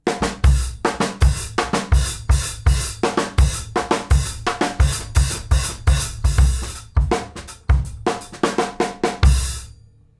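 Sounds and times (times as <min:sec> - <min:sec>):
live snare drums: 0:00.0 - 0:09.7
kick drum: 0:00.2 - 0:08.1.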